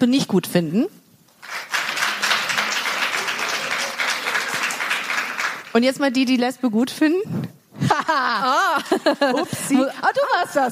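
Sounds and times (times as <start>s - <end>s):
speech: 0.0s - 1.0s, 5.8s - 10.7s
live audience applause: 1.4s - 5.8s
laughter: 7.8s - 10.7s.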